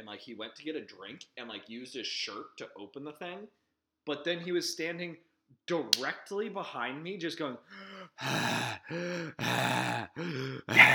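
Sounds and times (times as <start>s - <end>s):
speech: 0.1s - 10.9s
man imitating heavy out-of-breath gasping: 7.7s - 10.9s.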